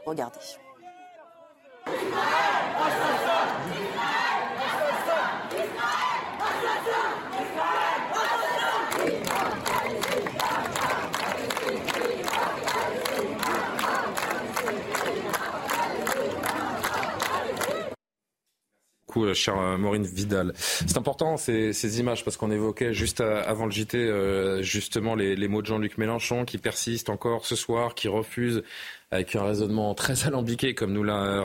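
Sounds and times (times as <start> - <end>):
speech: 0.0 - 0.6, 19.2 - 31.4
large crowd chanting slogans at a banned pro-Palestinian protest in Lyon: 0.3 - 18.0.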